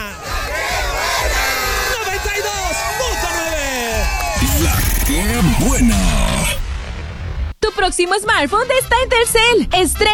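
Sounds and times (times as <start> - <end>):
crowd shouting the Mexican grito: 0.0 - 6.6
speech: 5.4 - 6.2, 7.8 - 10.1.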